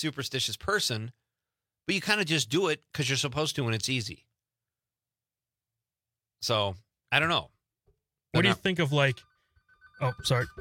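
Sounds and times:
speech: 0.0 - 1.2, 1.9 - 4.3, 6.4 - 7.6, 8.3 - 9.3, 10.0 - 10.5
phone ringing with a melodic ringtone for an incoming call: 8.4 - 10.5.

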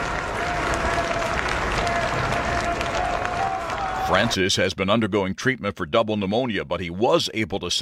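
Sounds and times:
crowd cheering outside hospital: 0.0 - 4.5
speech: 4.1 - 7.8.

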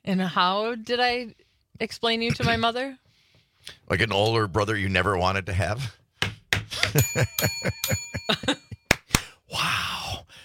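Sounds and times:
speech: 0.0 - 3.0, 3.6 - 6.0, 6.8 - 8.6
bright bell ringing: 7.0 - 9.0.

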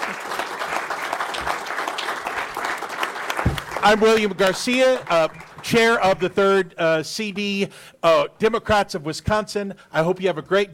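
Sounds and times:
audience applause: 0.0 - 6.0
speech: 3.8 - 10.7.

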